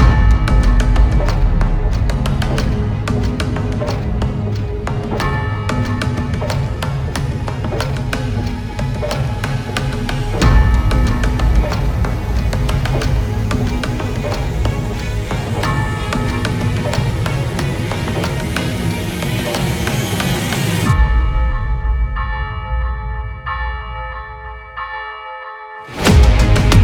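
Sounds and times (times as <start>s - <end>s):
epic bells: 0.0s - 26.8s.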